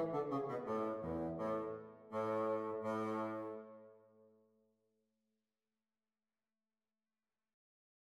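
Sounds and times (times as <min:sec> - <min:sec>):
bassoon duet: 0:00.0 - 0:03.9.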